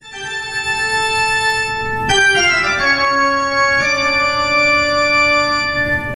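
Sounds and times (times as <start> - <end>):
Halloween ringtone: 0.0 - 6.1.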